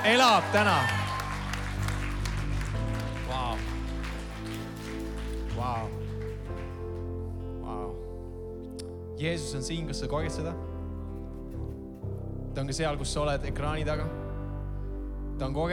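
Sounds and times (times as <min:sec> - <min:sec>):
speech: 0:00.0 - 0:01.0, 0:05.6 - 0:06.0, 0:09.2 - 0:10.7, 0:12.6 - 0:14.2, 0:15.4 - 0:15.7
audience applause: 0:00.0 - 0:07.1
music: 0:00.0 - 0:15.7.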